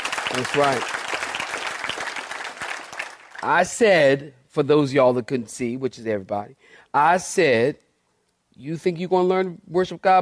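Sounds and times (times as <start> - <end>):
audience clapping hands: 0.0 - 3.7
speech: 0.3 - 1.2, 3.4 - 7.8, 8.6 - 10.1.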